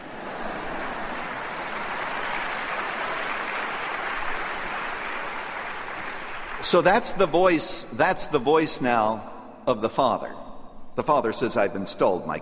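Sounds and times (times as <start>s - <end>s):
audience clapping: 0.0s - 7.4s
speech: 6.6s - 10.4s, 11.0s - 12.3s.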